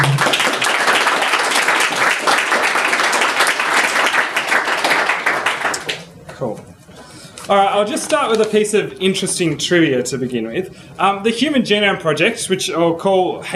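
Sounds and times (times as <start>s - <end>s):
audience applause welcoming a speaker: 0.0s - 6.1s
speech: 7.5s - 13.5s.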